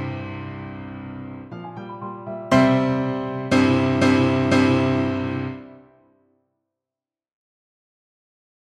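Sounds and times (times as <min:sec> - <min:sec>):
piano: 0:00.0 - 0:06.4.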